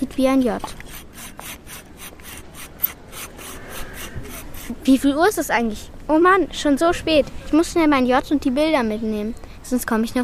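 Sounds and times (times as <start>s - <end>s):
speech: 0.0s - 1.1s, 4.8s - 10.2s
file filing the edges of a piece: 0.6s - 4.8s.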